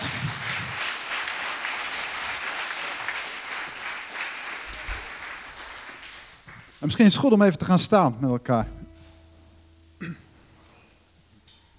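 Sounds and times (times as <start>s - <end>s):
audience applause: 0.0s - 7.2s
speech: 6.8s - 8.8s.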